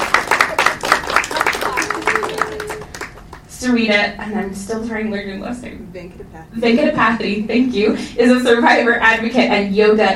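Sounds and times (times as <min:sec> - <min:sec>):
audience clapping: 0:00.0 - 0:03.5
speech: 0:03.6 - 0:10.1.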